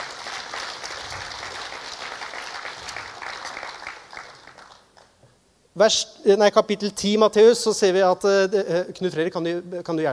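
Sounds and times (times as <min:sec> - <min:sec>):
audience applause: 0:00.0 - 0:05.1
speech: 0:05.8 - 0:10.1.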